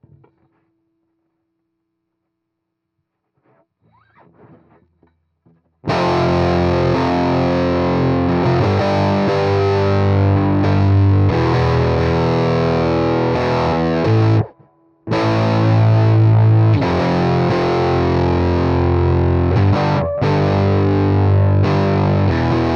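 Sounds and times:
heavy electric guitar: 5.8s - 22.7s.

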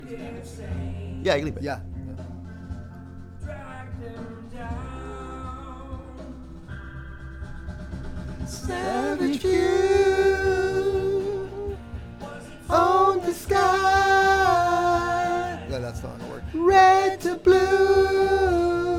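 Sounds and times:
backing vocals: 0.0s - 18.9s.

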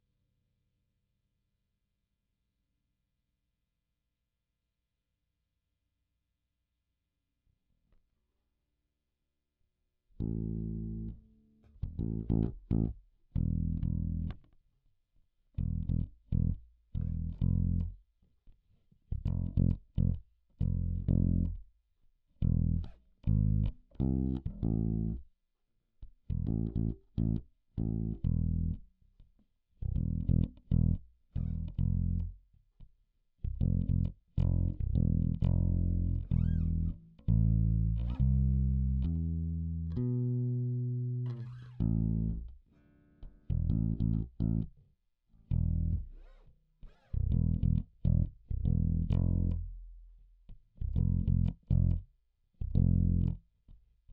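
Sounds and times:
bass guitar recorded by direct input: 10.2s - 14.4s, 15.6s - 18.0s, 19.1s - 21.6s, 22.4s - 25.2s, 26.2s - 28.8s, 29.8s - 32.4s, 33.4s - 44.8s, 45.4s - 53.5s.

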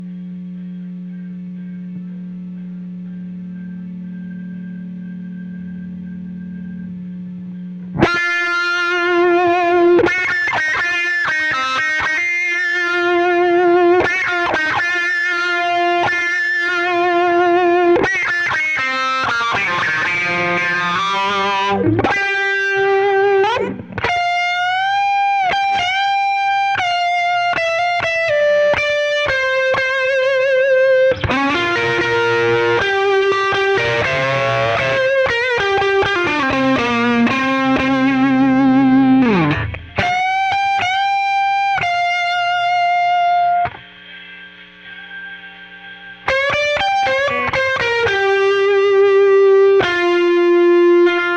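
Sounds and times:
solo guitar: 0.0s - 51.3s.

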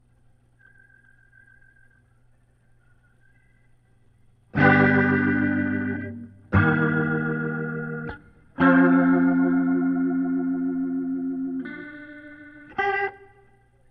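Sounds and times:
guitar through Leslie rotary speaker: 4.5s - 13.8s.

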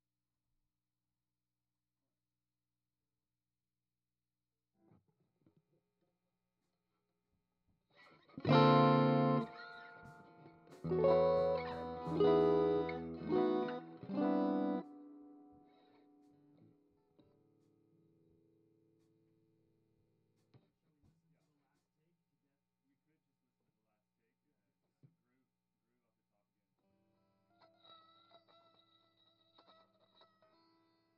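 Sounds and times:
guitar: 7.9s - 20.7s, 26.9s - 31.1s.

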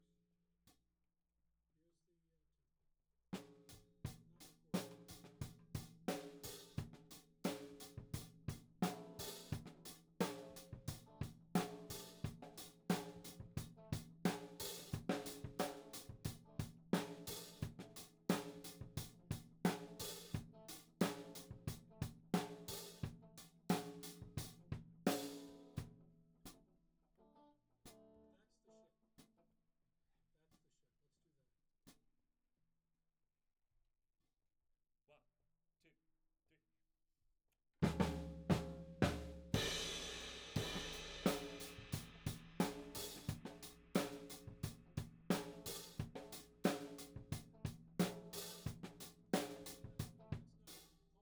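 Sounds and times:
tom drum: 4.8s - 25.5s, 37.8s - 50.8s.

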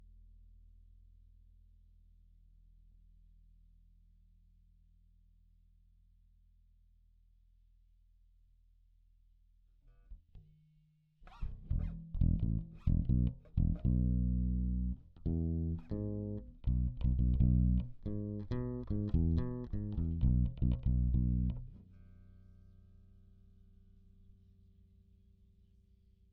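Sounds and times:
bass guitar recorded by direct input: 11.2s - 24.9s.

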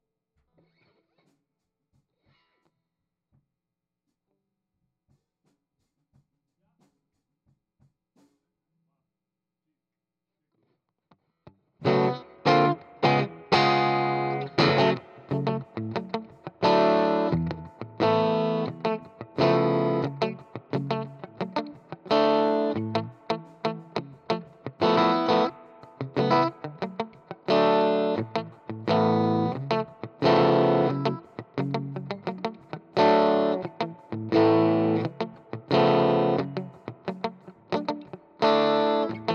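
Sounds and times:
guitar: 11.8s - 39.3s.

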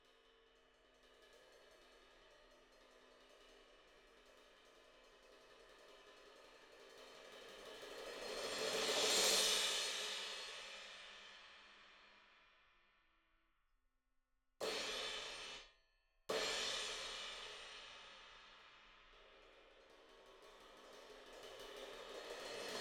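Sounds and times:
cymbal: 0.0s - 12.6s, 14.6s - 15.7s, 16.3s - 22.8s.

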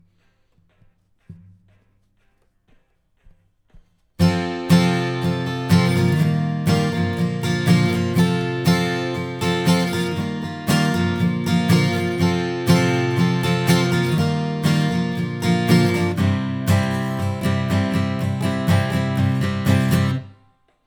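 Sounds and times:
acoustic guitar: 4.2s - 20.6s.

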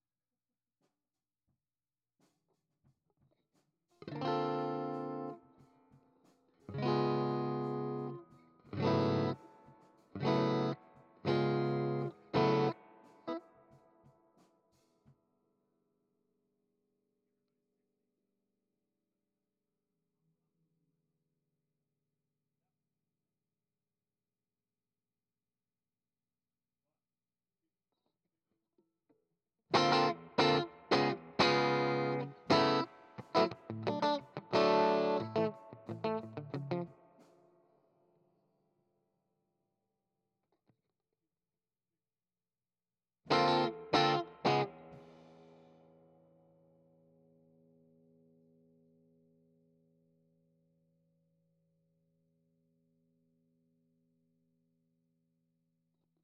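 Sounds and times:
guitar: 4.0s - 14.2s, 29.7s - 37.6s, 43.3s - 49.2s.

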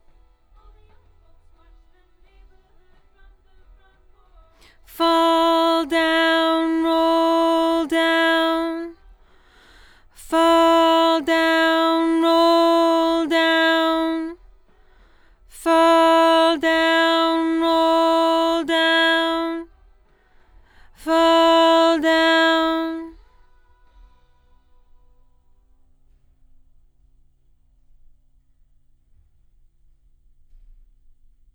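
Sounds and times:
doubled lead vocal: 4.8s - 9.0s, 10.1s - 14.4s, 15.5s - 19.7s, 20.9s - 23.1s.

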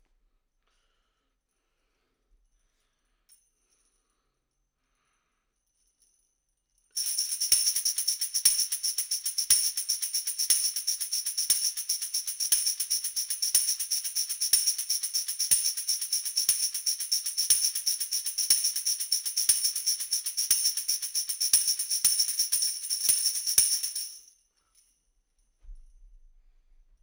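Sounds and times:
tambourine: 1.5s - 26.2s.

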